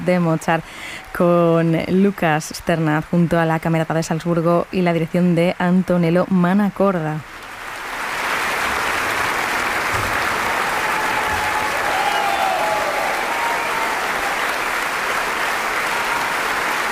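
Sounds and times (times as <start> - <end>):
speech: 0.0 - 7.3
concert audience in Carinthia applauding a young pianist: 7.6 - 16.9.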